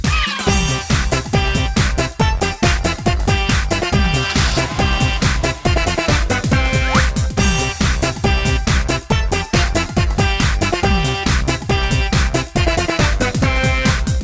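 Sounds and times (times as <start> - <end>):
background music: 0.1 - 14.2.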